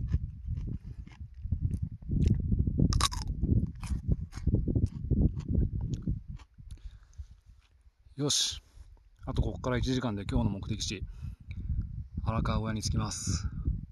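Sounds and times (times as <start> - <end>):
biting and crunching a raw cucumber: 0.0 - 7.8
speech: 8.2 - 8.6, 9.3 - 11.2, 12.3 - 13.5.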